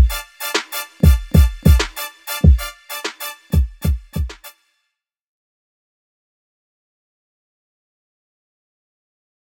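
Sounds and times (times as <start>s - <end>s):
trap beats: 0.0s - 4.5s.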